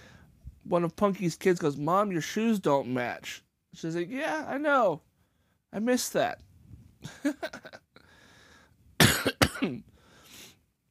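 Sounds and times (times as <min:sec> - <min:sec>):
speech: 0:00.7 - 0:05.1, 0:05.7 - 0:07.8
person coughing: 0:09.0 - 0:09.9.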